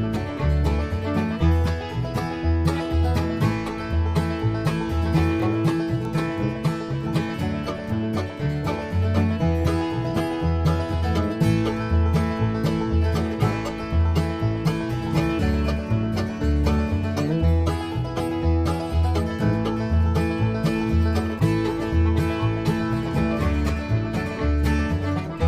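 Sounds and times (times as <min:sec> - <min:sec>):
banjo: 0:00.0 - 0:25.4.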